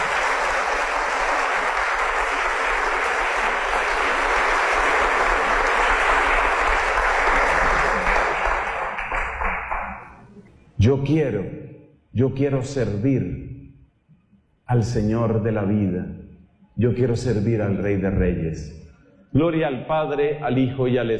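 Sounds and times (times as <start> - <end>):
crowd applause: 0.0 - 10.4
speech: 10.9 - 11.6, 12.2 - 13.5, 14.7 - 16.2, 16.8 - 21.1.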